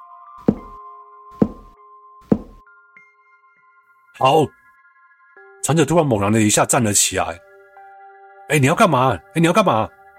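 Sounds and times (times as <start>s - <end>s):
knocking on a wall: 0.4s - 0.8s, 1.4s - 2.6s
speech: 4.2s - 4.6s, 5.6s - 7.5s, 8.5s - 10.0s.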